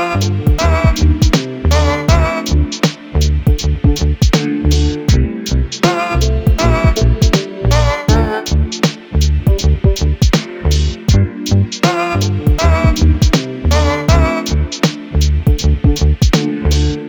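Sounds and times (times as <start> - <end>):
lofi music: 0.0 - 17.0.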